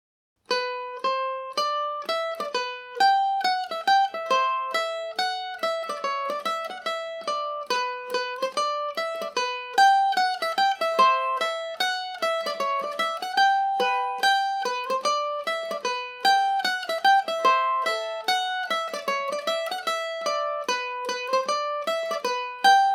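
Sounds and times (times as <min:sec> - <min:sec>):
Irish mandolin barndance in G major: 0:00.5 - 0:22.9.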